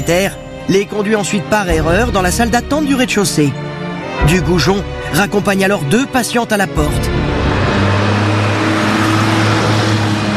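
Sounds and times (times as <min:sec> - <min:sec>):
speech: 0:00.1 - 0:07.1
old front-wheel-drive cars speeding up: 0:06.7 - 0:10.3.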